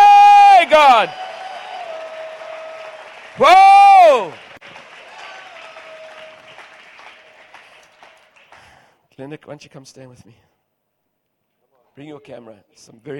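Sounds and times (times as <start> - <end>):
audience shouting: 0.0 - 4.4
audience clapping: 0.5 - 8.9
speech: 0.8 - 1.2, 3.4 - 4.4, 9.2 - 10.5, 12.0 - 13.1.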